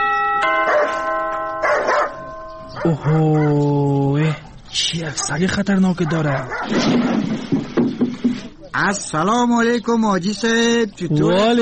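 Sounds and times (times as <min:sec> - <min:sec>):
doorbell ringing: 0:00.0 - 0:03.3
speech: 0:02.8 - 0:08.0, 0:08.8 - 0:11.6.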